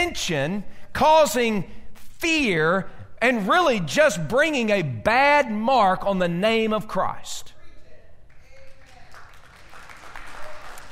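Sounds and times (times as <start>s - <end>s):
speech: 0.0s - 7.5s
audience applause: 8.8s - 10.8s.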